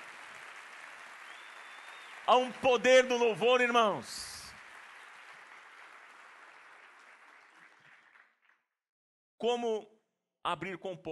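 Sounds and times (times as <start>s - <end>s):
audience applause: 0.0s - 8.4s
speech: 2.3s - 4.3s, 9.4s - 11.1s.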